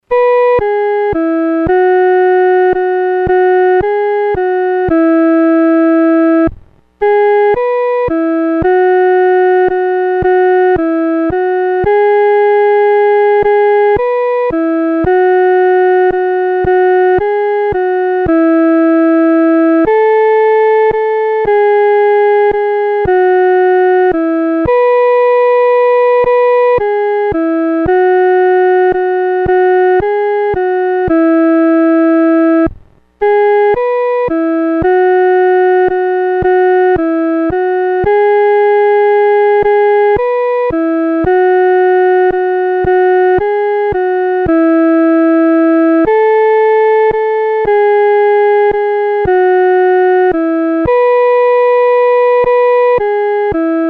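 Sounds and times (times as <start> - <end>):
solo first voice: 0.0 - 53.8.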